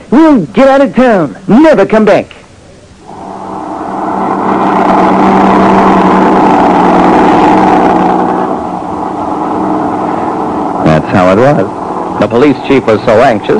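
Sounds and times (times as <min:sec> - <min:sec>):
speech: 0:00.1 - 0:02.4, 0:11.2 - 0:13.5
truck engine running: 0:03.0 - 0:13.5.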